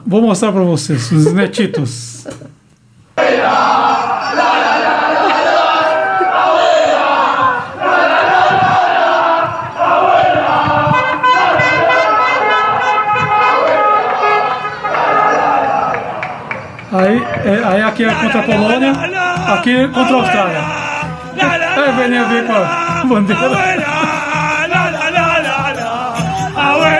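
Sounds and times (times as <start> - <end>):
speech: 0.1 - 2.6, 17.0 - 20.8, 21.4 - 24.0
laughter: 0.9 - 2.6, 4.3 - 7.8, 20.0 - 26.9
large crowd of football fans cheering: 3.2 - 26.9
scattered horn toots: 10.6 - 16.1.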